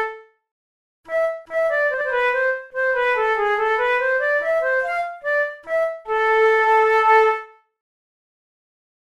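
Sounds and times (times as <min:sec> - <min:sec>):
two flutes playing a concerto: 0:01.1 - 0:07.5.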